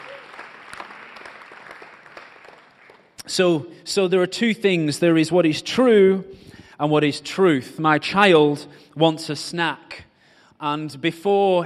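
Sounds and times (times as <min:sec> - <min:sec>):
audience clapping: 0:00.0 - 0:03.3
speech: 0:03.3 - 0:10.0, 0:10.6 - 0:11.6.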